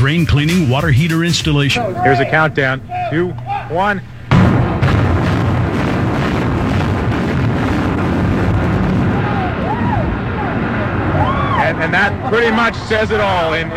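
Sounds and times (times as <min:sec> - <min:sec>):
speech: 0:00.0 - 0:04.1, 0:11.8 - 0:13.7
sharp crackling bursts: 0:00.0 - 0:13.7
demolition blast: 0:04.3 - 0:13.7.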